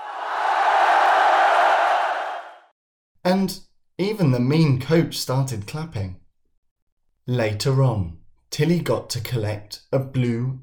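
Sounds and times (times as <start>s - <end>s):
crowd cheering: 0.0s - 2.7s
speech: 3.3s - 6.2s, 7.3s - 10.6s.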